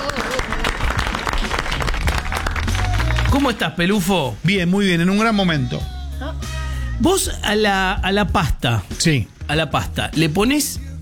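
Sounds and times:
applause: 0:00.0 - 0:03.8
speech: 0:03.3 - 0:10.8.

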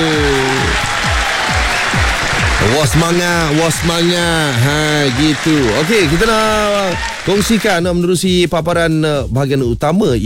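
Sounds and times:
crowd applauding: 0:00.0 - 0:07.9
speech: 0:02.7 - 0:10.2.

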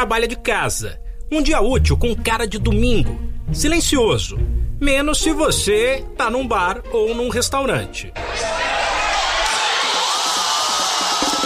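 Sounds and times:
speech: 0:00.0 - 0:08.8
football fans cheering Brazil's first goal: 0:08.2 - 0:11.4.

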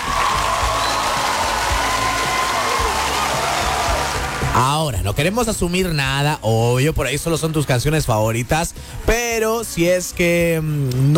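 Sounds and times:
audience applause: 0:00.0 - 0:04.7
speech: 0:04.6 - 0:11.1.

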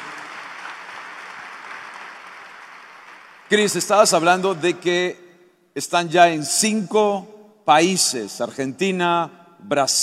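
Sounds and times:
audience applause: 0:00.0 - 0:03.5
speech: 0:03.5 - 0:05.2, 0:05.8 - 0:10.0.

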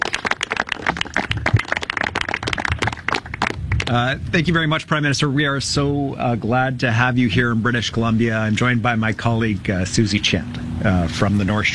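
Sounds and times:
audience clapping at press conference: 0:00.0 - 0:04.0
speech: 0:03.9 - 0:11.7.

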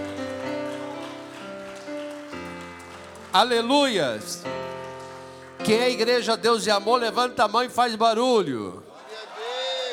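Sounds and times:
audience applause: 0:00.0 - 0:06.2
sustained keyboard chords: 0:00.0 - 0:08.2
speech: 0:03.4 - 0:04.8, 0:05.6 - 0:08.9.

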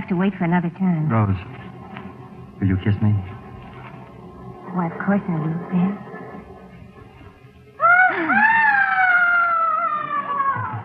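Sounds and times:
speech: 0:00.1 - 0:01.7, 0:02.6 - 0:03.3, 0:04.7 - 0:06.1
long high-pitched scream: 0:07.8 - 0:10.8.

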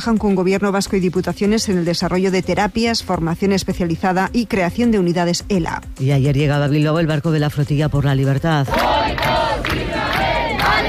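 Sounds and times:
speech: 0:00.0 - 0:10.1
crowd shouting and cheering at arrival: 0:08.7 - 0:10.8.

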